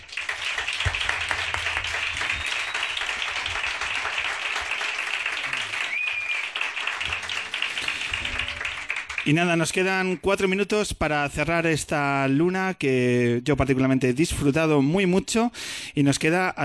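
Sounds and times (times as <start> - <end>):
loud applause: 0.0 - 10.2
speech: 9.3 - 16.6.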